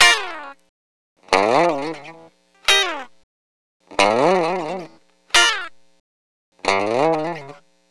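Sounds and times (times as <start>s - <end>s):
dry lounge guitar in A sharp: 0.0s - 0.6s, 1.3s - 3.2s, 3.9s - 5.8s, 6.6s - 7.7s.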